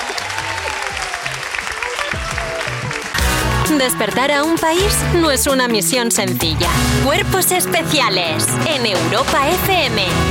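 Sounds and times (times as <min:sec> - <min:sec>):
applause: 0:00.0 - 0:04.0
speech: 0:03.7 - 0:10.2.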